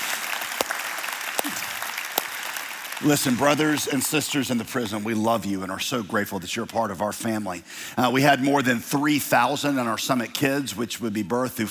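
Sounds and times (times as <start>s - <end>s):
audience clapping: 0.0s - 5.0s
speech: 1.4s - 1.7s, 3.0s - 11.7s.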